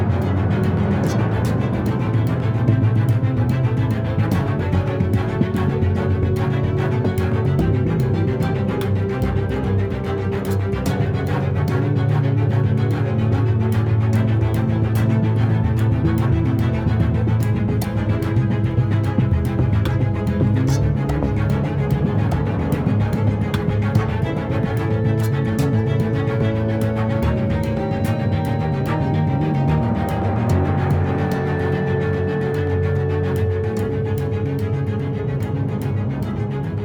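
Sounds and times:
action loop: 0:00.2 - 0:36.7.

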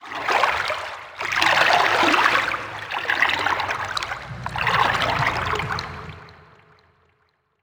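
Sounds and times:
calm distant water: 0:01.3 - 0:07.0.

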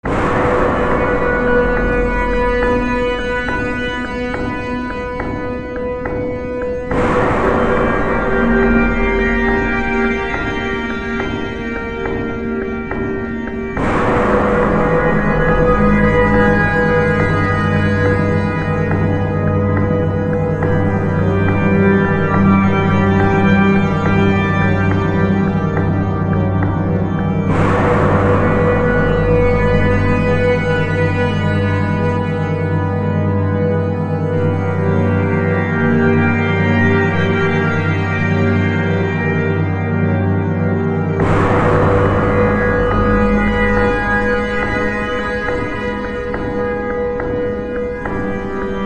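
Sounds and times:
subway music: 0:00.0 - 0:48.8.

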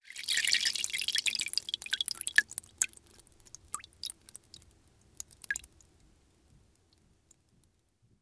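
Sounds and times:
oil pouring into a lamp: 0:00.1 - 0:05.9.

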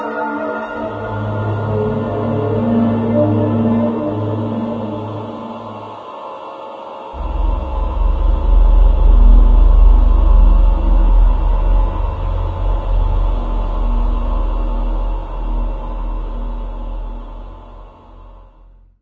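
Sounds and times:
monorail intro music: 0:00.2 - 0:06.1, 0:07.2 - 0:18.8.

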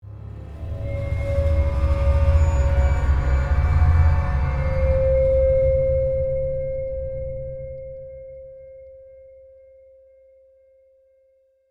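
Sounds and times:
tense music stinger: 0:00.0 - 0:08.5.

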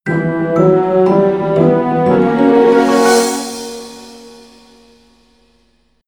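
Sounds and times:
jingle: 0:00.1 - 0:05.4.

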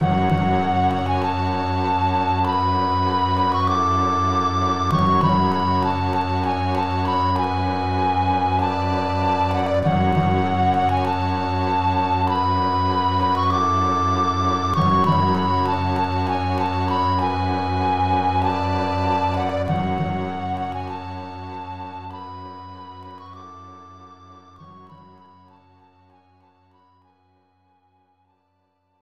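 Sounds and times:
flute: 0:00.0 - 0:28.2.

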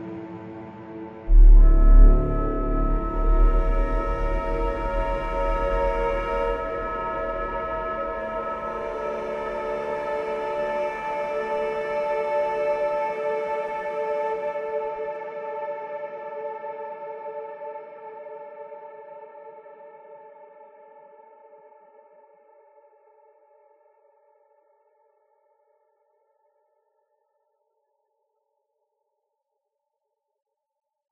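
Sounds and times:
cave music: 0:00.0 - 0:20.6.

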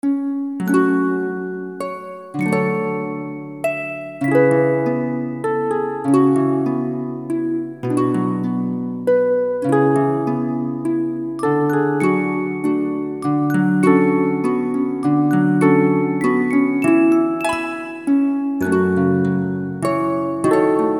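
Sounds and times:
harp waltz: 0:00.0 - 0:20.9.

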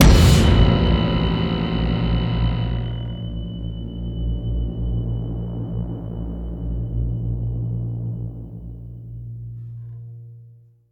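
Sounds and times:
shock sting: 0:00.0 - 0:08.5.

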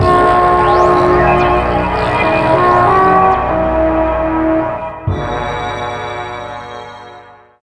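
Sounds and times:
game level jingle: 0:00.0 - 0:04.7.

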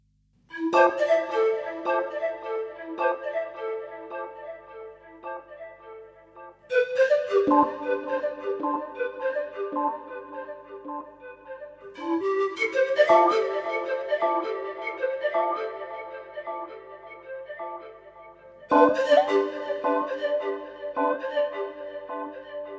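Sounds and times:
spooky swamp music: 0:00.5 - 0:22.7.

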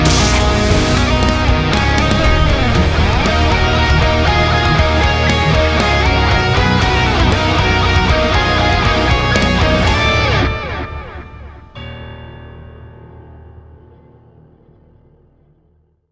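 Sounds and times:
intro music: 0:00.0 - 0:12.8.

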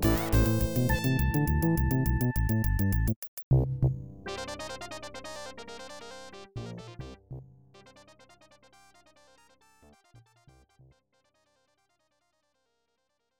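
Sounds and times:
boss fight music: 0:00.0 - 0:03.1.

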